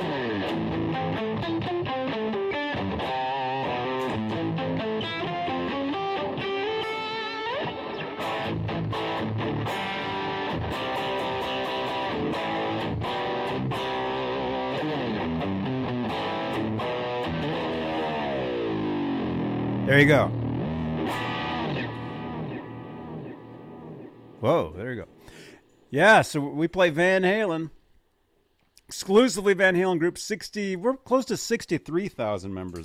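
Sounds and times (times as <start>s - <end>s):
distorted electric guitar riff: 0.0s - 25.4s
speech: 19.9s - 20.4s, 24.4s - 25.1s, 25.9s - 27.8s, 29.0s - 32.8s.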